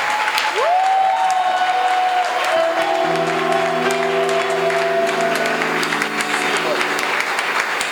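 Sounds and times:
congregation applause in a church service: 0:00.0 - 0:07.9.

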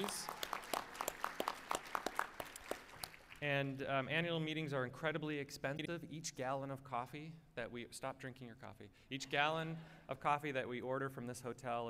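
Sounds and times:
speech: 0:00.0 - 0:00.4, 0:03.4 - 0:11.8
audience applause: 0:00.0 - 0:03.4.

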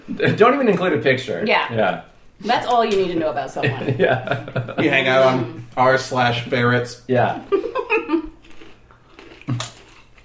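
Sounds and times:
speech: 0:00.1 - 0:07.6
laughter: 0:03.6 - 0:05.7, 0:07.3 - 0:08.3
crunching on a chip: 0:08.4 - 0:10.2.

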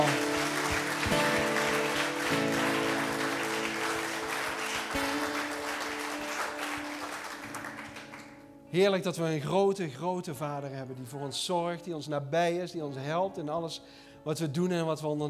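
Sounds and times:
audience applause: 0:00.0 - 0:08.6
speech: 0:08.7 - 0:15.2.

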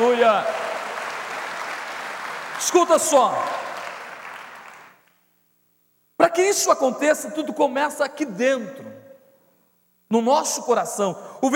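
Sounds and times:
audience applause: 0:00.0 - 0:05.0
speech: 0:00.2 - 0:00.6, 0:02.6 - 0:03.7, 0:06.4 - 0:08.9, 0:10.1 - 0:11.5.

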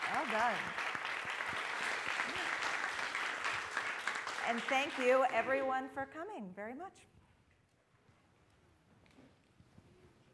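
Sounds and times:
crowd clapping: 0:00.0 - 0:05.9
speech: 0:00.2 - 0:00.9, 0:04.5 - 0:07.2.

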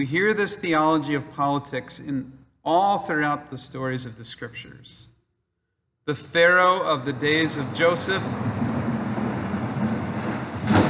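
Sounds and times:
speech: 0:00.0 - 0:05.1, 0:06.1 - 0:08.6
air conditioner humming: 0:06.1 - 0:10.8.

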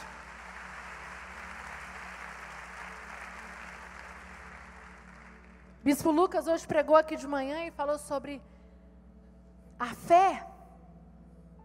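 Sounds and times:
applause: 0:00.0 - 0:05.8
speech: 0:05.8 - 0:08.6, 0:09.8 - 0:10.5.

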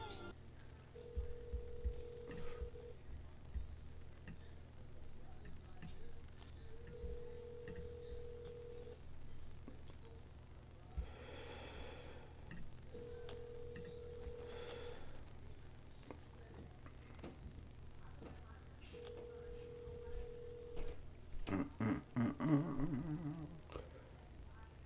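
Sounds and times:
low hum: 0:00.0 - 0:24.8
ringback tone of an outgoing phone call: 0:01.0 - 0:02.9, 0:06.8 - 0:09.0, 0:12.9 - 0:15.0, 0:19.0 - 0:21.0.

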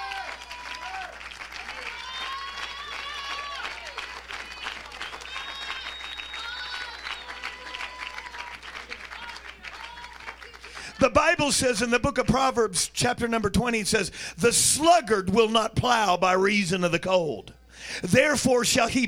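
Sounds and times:
audience clapping hands: 0:00.0 - 0:12.4
speech: 0:11.0 - 0:19.0.

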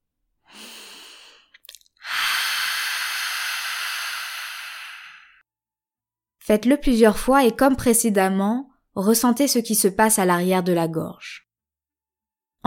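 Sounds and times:
open-mouth exhalation with an ah sound: 0:00.5 - 0:05.4
speech: 0:06.5 - 0:11.4.

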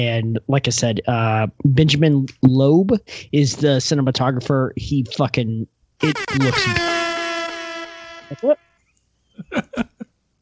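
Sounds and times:
speech: 0:00.0 - 0:07.0, 0:08.3 - 0:08.6
air horn blast: 0:06.0 - 0:08.8
laughter: 0:09.4 - 0:10.1.

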